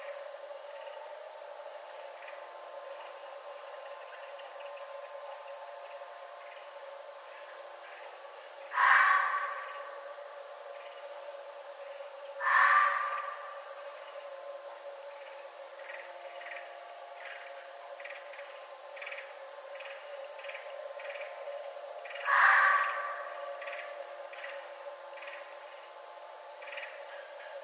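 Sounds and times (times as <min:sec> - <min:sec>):
red fox calling: 0:08.7 - 0:10.2, 0:12.4 - 0:14.0, 0:22.0 - 0:24.6.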